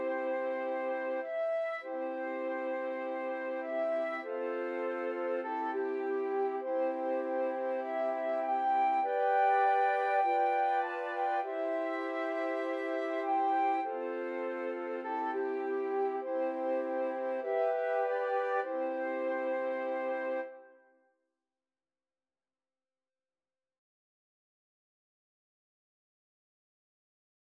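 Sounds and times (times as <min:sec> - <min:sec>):
flute melody: 0:00.0 - 0:20.8.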